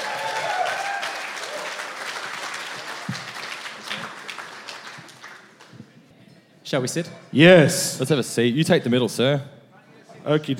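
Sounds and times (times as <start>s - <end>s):
voices and cheers: 0.0s - 2.2s
audience applause: 0.0s - 5.8s
speech: 6.7s - 9.6s, 10.2s - 10.5s.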